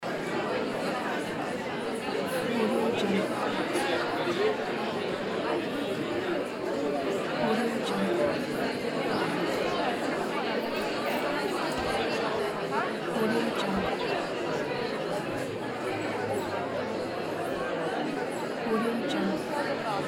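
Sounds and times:
crowd murmuring: 0:00.0 - 0:20.0.

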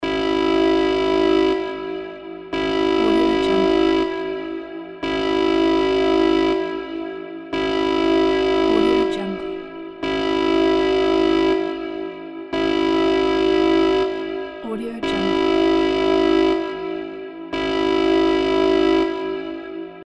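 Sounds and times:
emergency siren: 0:00.0 - 0:20.0.

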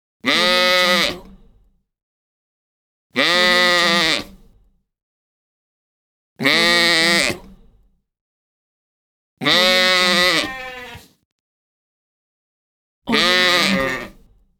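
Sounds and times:
sheep baaing: 0:00.3 - 0:01.2, 0:03.2 - 0:04.4, 0:06.4 - 0:07.4, 0:09.4 - 0:11.1, 0:13.1 - 0:14.2.

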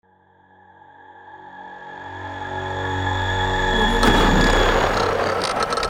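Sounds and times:
futuristic battle horn: 0:01.8 - 0:05.8.

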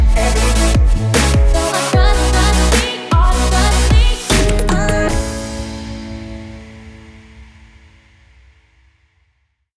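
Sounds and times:
future bass music: 0:00.0 - 0:05.7.

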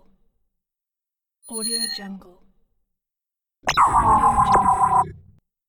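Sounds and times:
alien technology sounds: 0:03.7 - 0:05.4.

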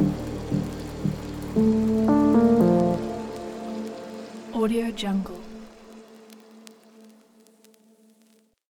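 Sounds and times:
modern drum and bass music: 0:00.0 - 0:03.4.

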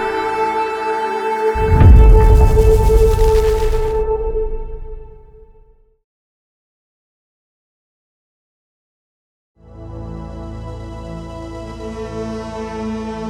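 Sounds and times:
retro space synth logo: 0:00.1 - 0:05.1.

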